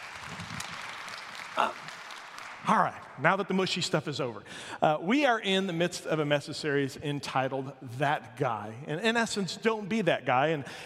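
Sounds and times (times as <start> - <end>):
audience clapping: 0.0 - 3.5
speech: 1.6 - 1.9, 2.6 - 10.8.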